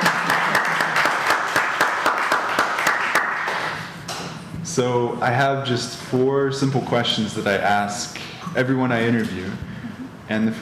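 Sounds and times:
audience applause at a live show in Chicago: 0.0 - 3.8
speech: 4.8 - 9.7, 10.3 - 10.6.

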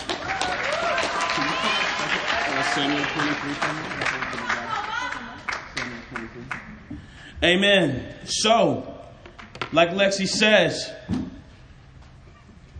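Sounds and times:
audience clapping: 0.0 - 6.9
speech: 2.8 - 4.6, 7.4 - 8.9, 9.7 - 11.3.

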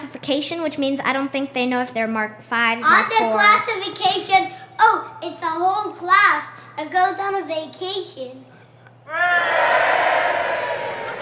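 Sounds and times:
speech: 0.1 - 8.5, 9.1 - 10.6
audience booing: 9.1 - 11.2.

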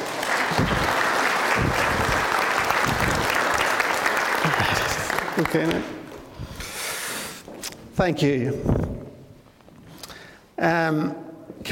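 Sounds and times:
applause from a large group: 0.0 - 6.2
speech: 5.4 - 6.0, 8.0 - 8.8, 10.6 - 11.7.

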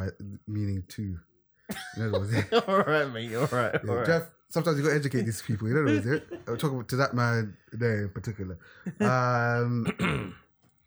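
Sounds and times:
speech: 0.1 - 10.4
man clearing his throat: 1.7 - 2.3, 9.8 - 10.4
laughter: 1.8 - 4.2, 4.8 - 6.8, 8.9 - 9.4.

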